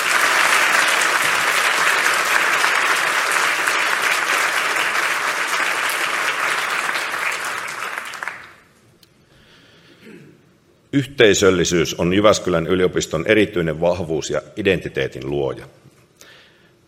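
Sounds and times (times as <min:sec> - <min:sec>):
audience applause: 0:00.0 - 0:08.7
speech: 0:11.0 - 0:15.9.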